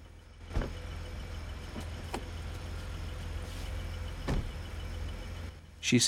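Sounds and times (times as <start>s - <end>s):
cars pulling away: 0.0s - 6.0s.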